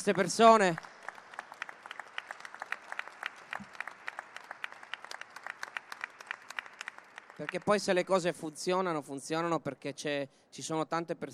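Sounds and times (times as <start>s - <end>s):
speech: 0.0s - 0.9s, 7.4s - 11.3s
applause: 0.0s - 8.5s.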